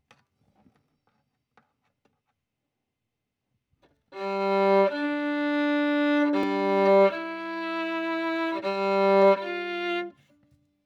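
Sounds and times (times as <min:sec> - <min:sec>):
violin: 0:04.2 - 0:10.3.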